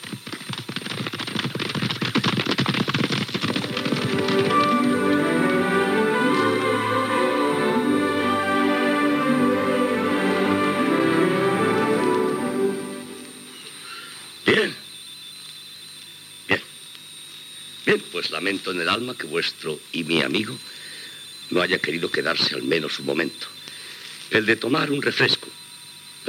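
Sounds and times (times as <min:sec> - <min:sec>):
horse hooves clip-clopping as the rider sets off: 0:00.0 - 0:06.8
steady tonal backdrop: 0:03.6 - 0:13.8
speech: 0:18.2 - 0:20.8, 0:21.5 - 0:23.5, 0:24.3 - 0:25.4.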